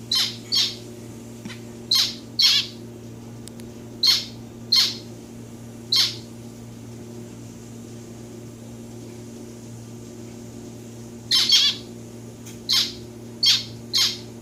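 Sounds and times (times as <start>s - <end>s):
domestic society finch calls: 0.1s - 0.8s, 1.9s - 2.8s, 4.0s - 5.1s, 5.9s - 6.3s, 11.3s - 11.9s, 12.7s - 14.3s.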